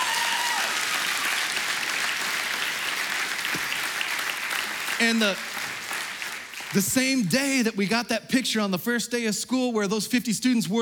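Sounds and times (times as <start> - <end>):
crowd applauding: 0.0 - 7.6
speech: 5.0 - 5.6, 6.7 - 10.7.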